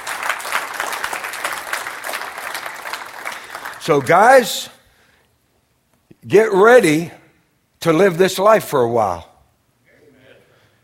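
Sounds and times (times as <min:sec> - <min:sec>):
audience clapping hands: 0:00.0 - 0:04.7
speech: 0:03.9 - 0:04.8, 0:06.2 - 0:07.2, 0:07.8 - 0:09.3.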